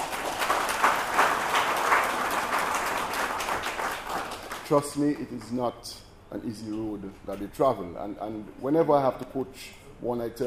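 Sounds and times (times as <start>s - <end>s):
crowd applauding: 0.0s - 5.1s
speech: 4.7s - 10.4s.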